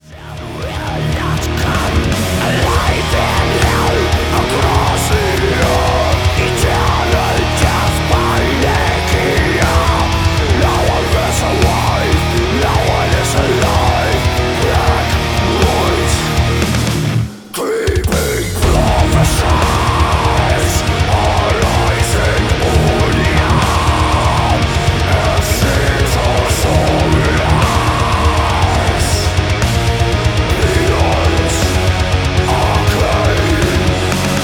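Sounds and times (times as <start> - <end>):
metal music: 0.0 - 34.4.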